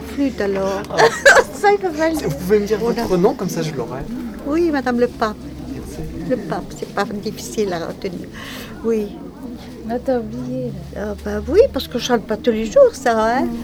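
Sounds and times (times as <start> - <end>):
Breton pardon chant in Lesconil: 0.0 - 13.6
laughter: 0.0 - 13.6.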